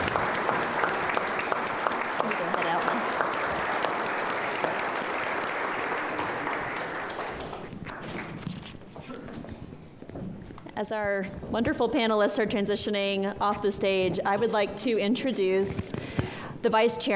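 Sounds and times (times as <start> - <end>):
audience round of applause: 0.0 - 8.4
speech: 10.9 - 15.9, 16.6 - 17.1.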